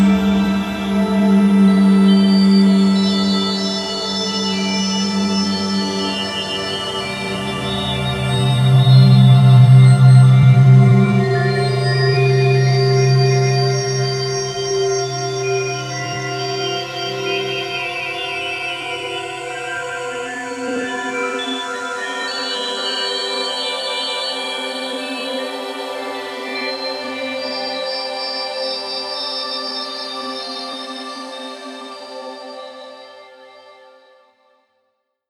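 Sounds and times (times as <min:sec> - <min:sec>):
drone sound: 0:00.0 - 0:18.2.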